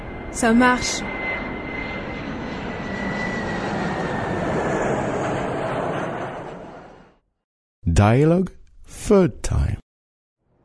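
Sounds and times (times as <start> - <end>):
airplane engine droning with a faint whistling tone: 0.0 - 7.2
speech: 0.3 - 1.2, 8.0 - 9.8.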